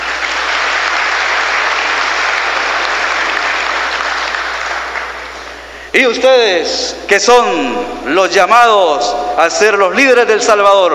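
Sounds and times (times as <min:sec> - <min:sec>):
audience applause: 0:00.0 - 0:05.8
speech: 0:06.0 - 0:10.9.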